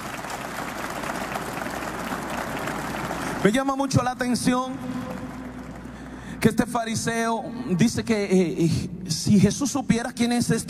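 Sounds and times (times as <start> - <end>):
crowd applauding: 0.0 - 6.6
speech: 3.4 - 5.1, 6.4 - 10.6.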